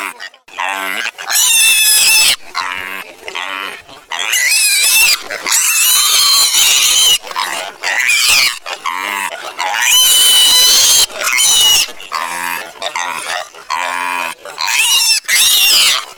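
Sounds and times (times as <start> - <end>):
young piglet screaming in high squeals: 0.0 - 16.1.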